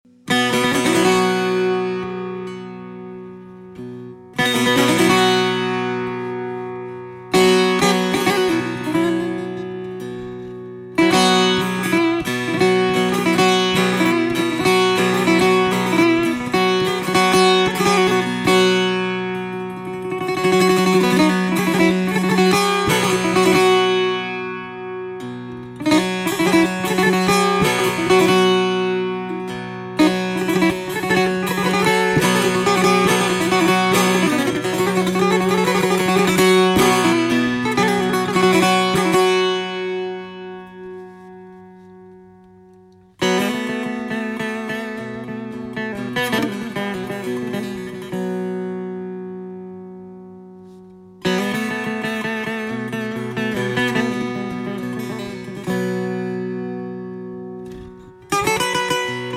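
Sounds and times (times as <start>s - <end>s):
setar solo: 0.1s - 59.3s.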